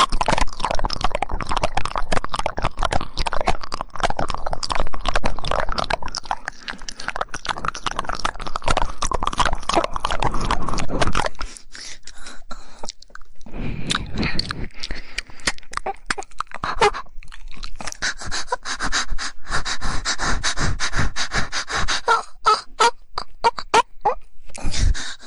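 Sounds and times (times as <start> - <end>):
saliva squelching mouth sounds: 0.0 - 25.2
woman moaning: 22.0 - 23.8.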